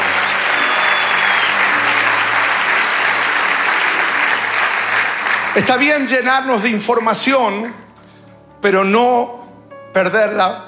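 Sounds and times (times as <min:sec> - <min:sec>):
audience applause: 0:00.0 - 0:07.0
speech: 0:05.6 - 0:07.8, 0:08.6 - 0:09.4, 0:10.0 - 0:10.6.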